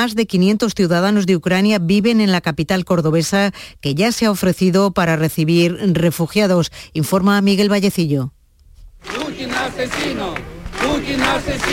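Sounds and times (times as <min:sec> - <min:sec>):
speech: 0:00.0 - 0:08.4, 0:09.0 - 0:11.7
crowd chanting a protest slogan: 0:09.0 - 0:11.7.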